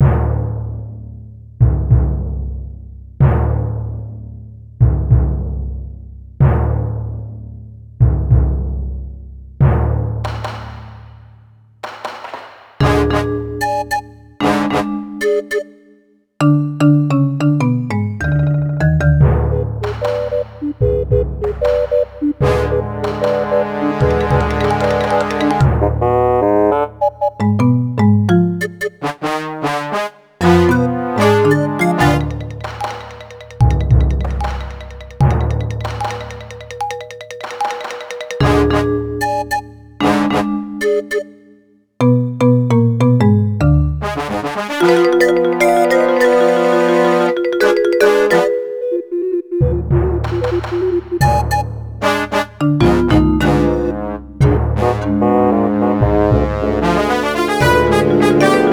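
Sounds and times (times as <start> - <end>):
forest music at 150 bpm: 0.0 - 58.7.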